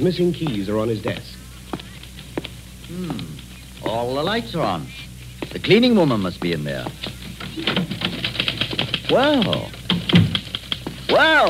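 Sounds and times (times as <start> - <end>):
speech: 0.0 - 1.4, 2.9 - 8.2, 9.1 - 10.4, 11.1 - 11.4
typing on a hand-tooled platinum-plated typewriter: 5.7 - 11.4.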